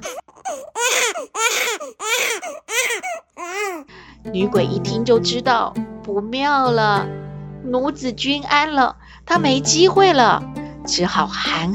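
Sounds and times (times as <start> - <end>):
newborn baby crying: 0.0 - 3.9
speech: 4.3 - 11.7.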